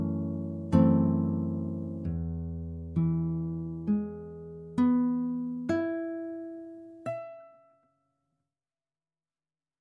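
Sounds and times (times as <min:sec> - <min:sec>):
guitar playing a hymn: 0:00.0 - 0:07.8.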